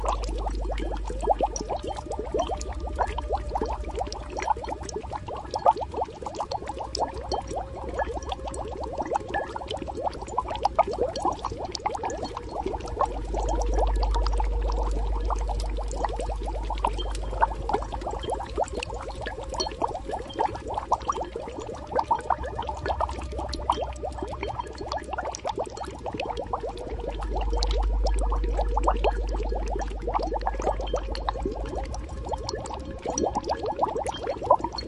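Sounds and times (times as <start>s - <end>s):
magical boiling: 0.0s - 34.8s.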